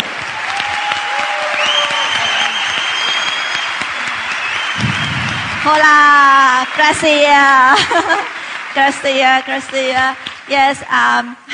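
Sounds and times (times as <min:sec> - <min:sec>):
audience applause: 0:00.0 - 0:10.5
speech: 0:05.6 - 0:11.5
laughter: 0:07.6 - 0:08.6.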